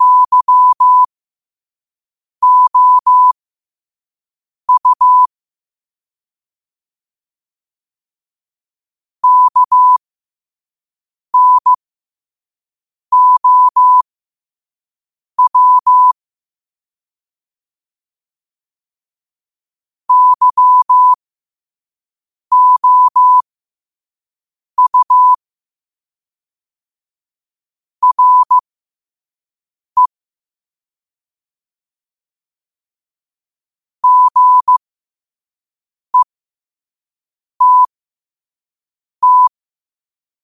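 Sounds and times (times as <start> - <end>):
morse code at 5 wpm: 0.0 - 1.1, 2.4 - 3.4, 4.7 - 5.3, 9.2 - 10.0, 11.4 - 11.8, 13.1 - 14.0, 15.4 - 16.2, 20.1 - 21.2, 22.5 - 23.4, 24.8 - 25.4, 28.0 - 28.6, 34.0 - 34.8, 37.6 - 37.9, 39.2 - 39.5.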